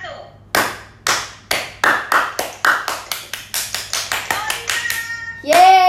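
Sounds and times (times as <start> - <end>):
audience clapping: 0.6 - 5.7.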